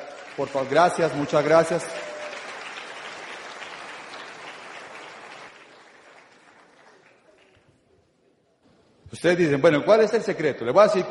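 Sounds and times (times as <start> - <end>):
audience applause: 0.0 - 7.8
speech: 0.4 - 2.0, 9.2 - 11.1.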